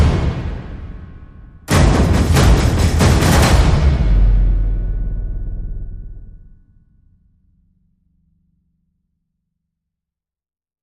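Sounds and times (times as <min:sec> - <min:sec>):
one hundred men playing drums without pads: 0:01.7 - 0:05.0.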